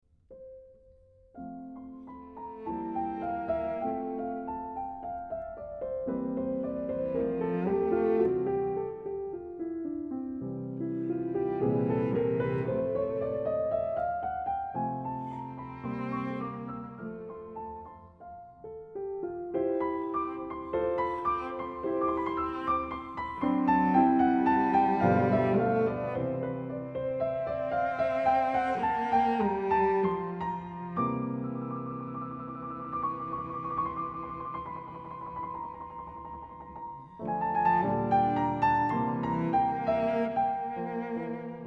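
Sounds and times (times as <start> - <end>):
cello and piano variations: 1.4 - 41.6.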